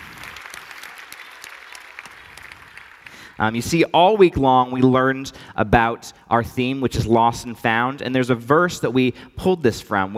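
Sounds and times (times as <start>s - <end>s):
audience applause: 0.0s - 3.4s
speech: 3.4s - 10.1s.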